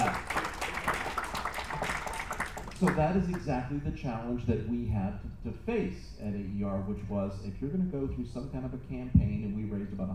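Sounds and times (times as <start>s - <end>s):
audience applause: 0.0s - 3.4s
speech: 2.8s - 10.1s.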